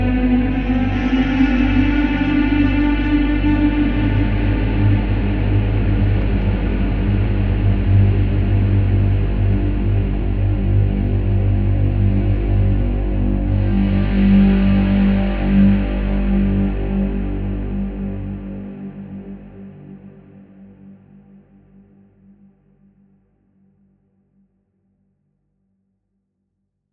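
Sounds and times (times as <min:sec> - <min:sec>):
guitar: 0:00.0 - 0:20.8.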